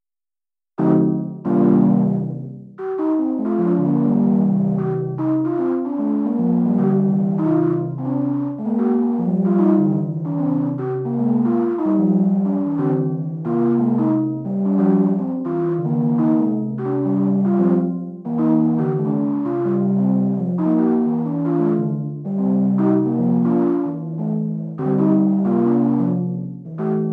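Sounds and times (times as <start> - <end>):
polyrhythm: 0.8 - 27.1.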